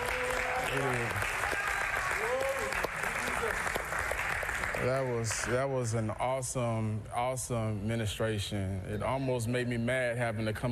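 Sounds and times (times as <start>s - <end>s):
voices calling out and cheering: 0.0s - 3.7s
crowd applauding: 0.0s - 5.8s
speech: 0.7s - 1.5s, 4.8s - 10.7s.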